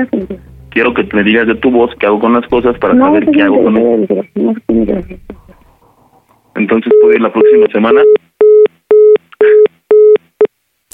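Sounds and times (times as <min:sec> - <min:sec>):
speech: 0:00.0 - 0:05.4, 0:06.6 - 0:08.2
burst of noise: 0:00.0 - 0:06.8
telephone busy signal after a hang-up: 0:06.9 - 0:10.2.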